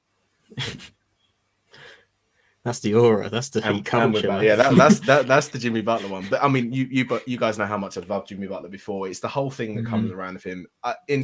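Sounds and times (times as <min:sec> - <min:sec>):
person sneezing: 0:00.6 - 0:00.9
short breathy sound: 0:01.7 - 0:02.6
speech: 0:02.6 - 0:11.2
laughter: 0:03.7 - 0:07.8, 0:09.8 - 0:10.2.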